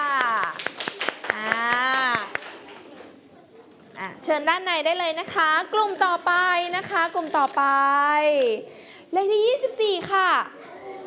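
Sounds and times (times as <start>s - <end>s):
children clapping for a group: 0.1s - 3.1s
speech: 4.2s - 10.6s.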